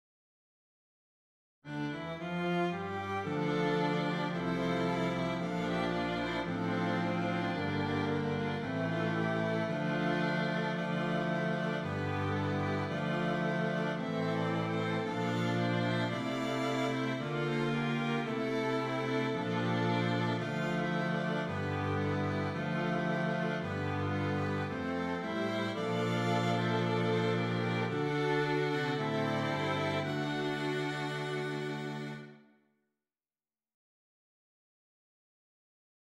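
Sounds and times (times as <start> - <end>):
strings: 1.7 - 32.5.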